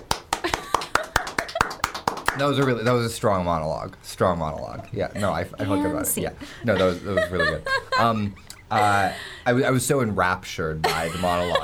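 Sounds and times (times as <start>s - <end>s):
hand clapping: 0.0s - 3.0s
speech: 2.4s - 11.6s
laughter: 5.1s - 9.3s, 10.8s - 11.6s.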